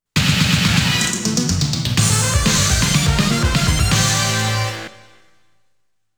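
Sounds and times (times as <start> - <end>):
bonus stage clear game music: 0.7 - 5.1.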